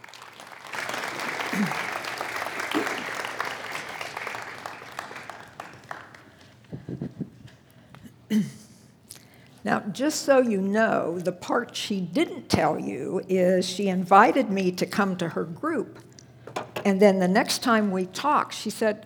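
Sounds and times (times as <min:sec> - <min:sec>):
audience applause welcoming a speaker at an evening talk: 0:00.0 - 0:06.6
speech: 0:01.6 - 0:01.9, 0:08.3 - 0:08.5, 0:09.6 - 0:16.1, 0:16.8 - 0:19.0.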